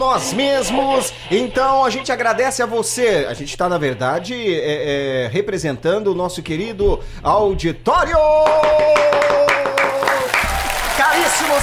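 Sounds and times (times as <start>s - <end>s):
speech: 0.0s - 9.6s, 11.0s - 11.6s
audience applause: 9.0s - 11.6s.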